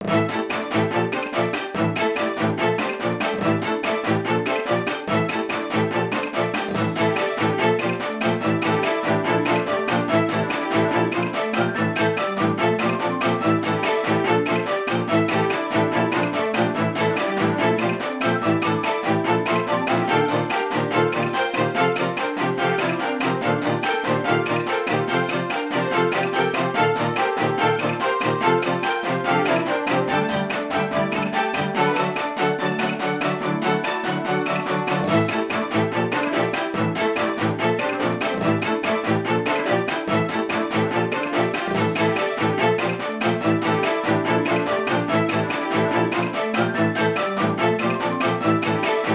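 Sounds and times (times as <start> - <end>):
upbeat battle music: 0.0 - 49.1.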